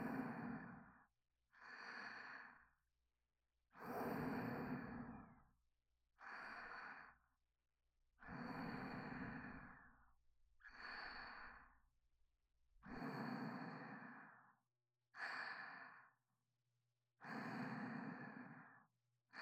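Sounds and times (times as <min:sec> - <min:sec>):
person breathing in sleep: 0:00.0 - 0:02.9, 0:03.7 - 0:05.6, 0:06.2 - 0:07.4, 0:08.2 - 0:12.0, 0:12.8 - 0:16.3, 0:17.2 - 0:19.4.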